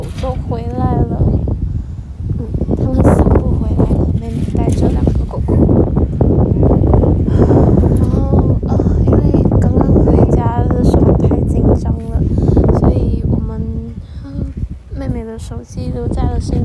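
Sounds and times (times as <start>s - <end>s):
people talking: 0.0s - 1.4s, 2.4s - 5.7s, 7.3s - 16.6s
strong wind before a thunderstorm: 0.0s - 16.6s.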